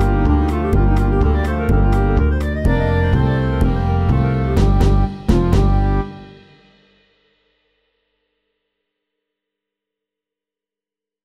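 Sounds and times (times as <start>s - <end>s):
Balkan stomp rhythm at 125 BPM: 0.0s - 6.6s.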